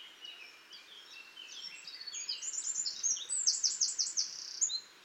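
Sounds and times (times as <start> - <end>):
Eurasian wren singing: 0.0 - 4.9.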